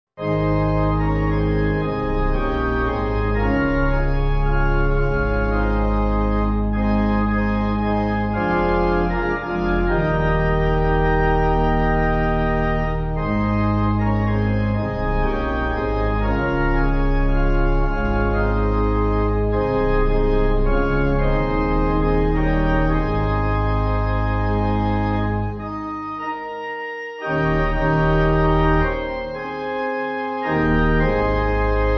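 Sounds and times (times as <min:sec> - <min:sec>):
pipe organ: 0:00.2 - 0:31.9.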